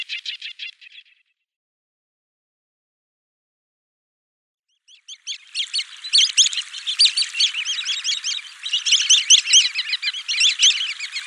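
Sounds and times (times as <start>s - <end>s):
sanderling calls: 5.2s - 11.2s.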